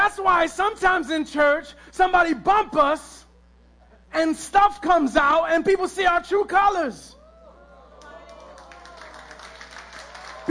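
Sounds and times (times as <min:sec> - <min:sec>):
speech: 0:00.1 - 0:03.2, 0:04.1 - 0:07.2
person clapping hands: 0:08.0 - 0:10.4.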